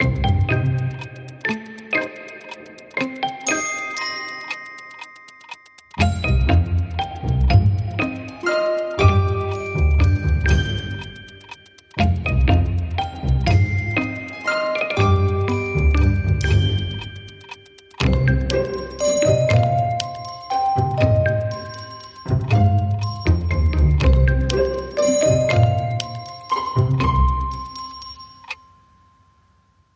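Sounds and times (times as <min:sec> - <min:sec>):
toy box ticking: 0:00.0 - 0:28.8.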